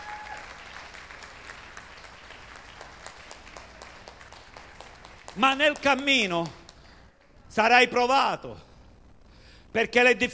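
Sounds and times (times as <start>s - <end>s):
audience applause: 0.0s - 6.8s
speech: 5.4s - 6.6s, 7.6s - 8.7s, 9.7s - 10.3s.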